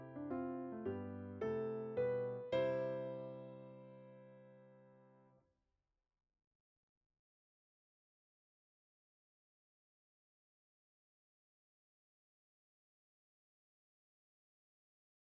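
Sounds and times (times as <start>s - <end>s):
piano: 0.0s - 5.4s.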